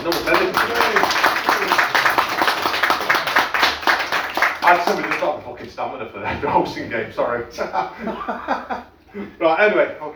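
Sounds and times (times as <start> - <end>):
audience round of applause: 0.0 - 5.3
speech: 4.7 - 10.1
laughter: 7.6 - 9.4.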